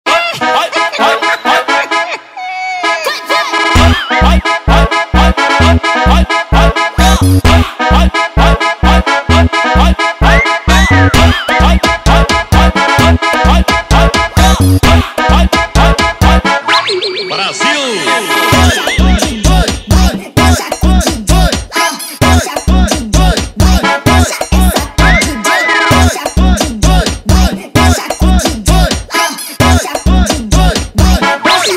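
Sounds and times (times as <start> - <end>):
accordion funk music: 0.1 - 31.7.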